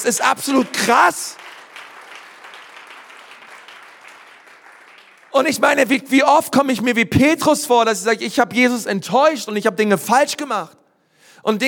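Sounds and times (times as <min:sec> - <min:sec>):
speech: 0:00.0 - 0:01.4, 0:05.3 - 0:10.8, 0:11.4 - 0:11.6
audience applause: 0:00.0 - 0:05.8.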